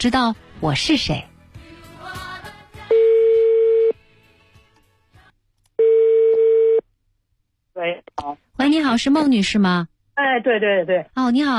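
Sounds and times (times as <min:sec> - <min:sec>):
speech: 0:00.0 - 0:01.3, 0:08.8 - 0:11.5
telephone ringback tone: 0:02.9 - 0:03.9, 0:05.8 - 0:06.8.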